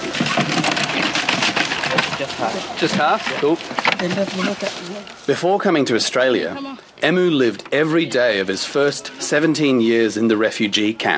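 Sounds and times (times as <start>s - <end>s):
Kunekune pigs crunching and chomping on feed: 0.0s - 5.6s
speech: 2.2s - 11.1s.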